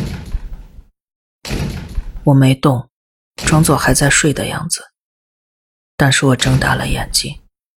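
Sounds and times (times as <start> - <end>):
chair smashing against iron door: 0.0 - 0.7, 1.4 - 2.2
speech: 2.3 - 4.9, 6.0 - 7.4.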